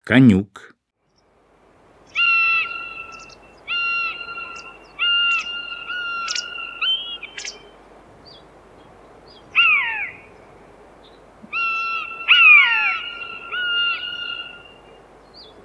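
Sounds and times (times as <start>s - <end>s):
common buzzard mewing: 2.1s - 7.8s, 9.5s - 10.4s, 11.5s - 14.8s.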